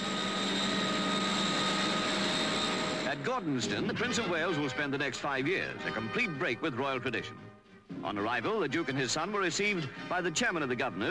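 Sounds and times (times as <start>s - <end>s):
Heron aircraft engines droning in flight: 0.0s - 5.8s
speech: 3.4s - 7.4s, 8.0s - 11.1s.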